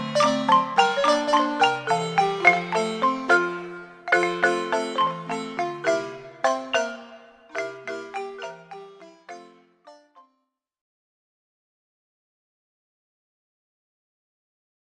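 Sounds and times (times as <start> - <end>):
marimba: 0.0 - 10.2.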